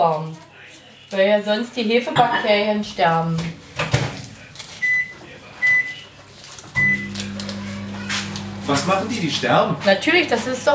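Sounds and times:
speech: 0.0s - 0.5s, 1.1s - 3.6s, 8.7s - 10.7s
microwave keypad beeps: 6.8s - 7.2s
microwave oven humming while heating milk: 6.8s - 9.6s.

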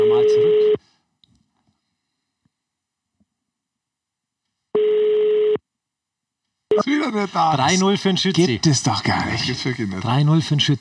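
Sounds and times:
ringback tone on an outgoing phone call: 4.8s - 5.6s
speech: 6.8s - 10.7s.

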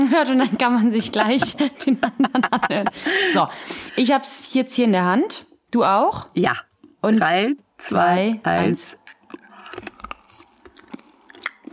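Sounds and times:
laughter: 0.0s - 3.5s
speech: 0.0s - 9.0s
two people chewing orange Mentos candies: 8.6s - 11.7s.

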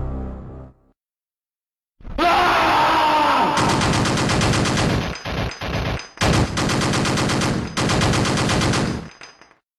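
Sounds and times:
groaning yell: 2.1s - 3.7s
rapid automatic video game gunfire: 3.5s - 9.4s.

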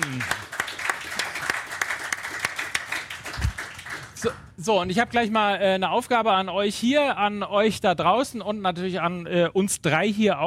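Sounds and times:
live audience applause: 0.0s - 4.2s
speech: 4.2s - 10.4s.

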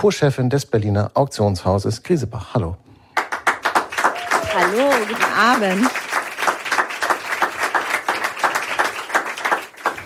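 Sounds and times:
speech: 0.0s - 2.9s, 4.6s - 6.0s
warm audience applause: 3.2s - 10.0s.

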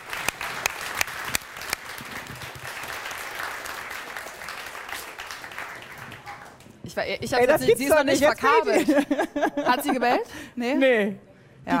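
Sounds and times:
audience applause: 0.0s - 6.7s
speech: 7.0s - 11.7s
laughter: 8.4s - 10.3s.

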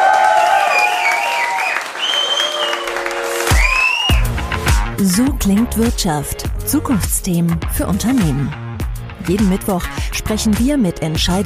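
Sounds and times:
people whooping: 0.0s - 4.3s
about 80 to 100 people clapping in an office building: 0.0s - 4.9s
speech: 5.0s - 8.6s, 9.2s - 11.4s.

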